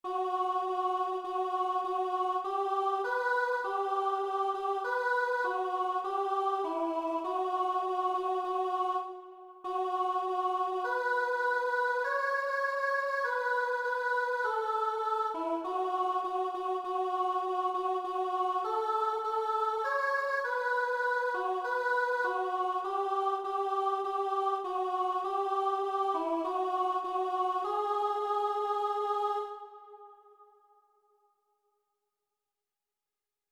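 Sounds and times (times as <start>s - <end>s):
morning hymn alto part: 0.1s - 30.4s.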